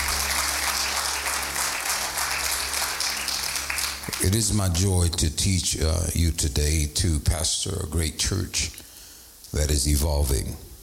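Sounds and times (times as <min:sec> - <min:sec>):
audience applause: 0:00.0 - 0:04.5
low hum: 0:00.0 - 0:06.3
speech: 0:04.2 - 0:08.8, 0:09.5 - 0:10.7.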